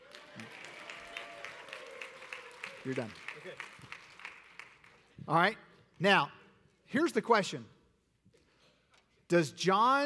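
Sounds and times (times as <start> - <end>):
audience clapping: 0.0 - 5.2
speech: 2.8 - 4.0, 5.3 - 7.8, 9.3 - 10.0.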